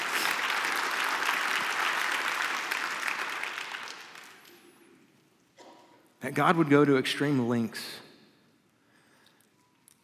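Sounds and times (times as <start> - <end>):
audience applause: 0.0 - 4.4
speech: 6.2 - 8.0.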